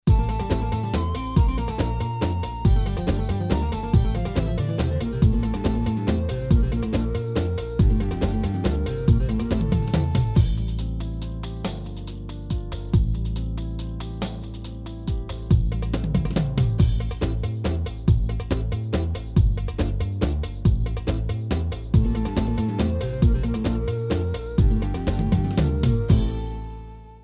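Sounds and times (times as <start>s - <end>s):
Yamaha PSR A300TR V2 keyboard rhythm in 3 4 art music: 0.0s - 27.2s.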